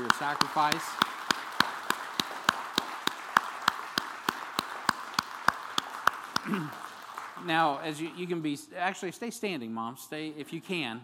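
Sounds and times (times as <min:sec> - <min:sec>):
audience applause for mothers: 0:00.0 - 0:08.5
speech: 0:00.2 - 0:01.1, 0:06.5 - 0:06.8, 0:07.4 - 0:11.0.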